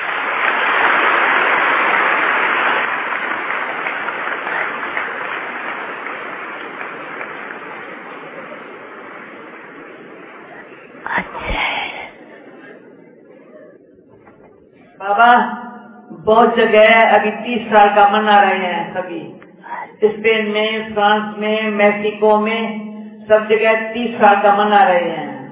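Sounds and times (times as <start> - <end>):
audience clapping: 0.0 - 12.8
speech: 16.3 - 19.4, 20.0 - 25.2.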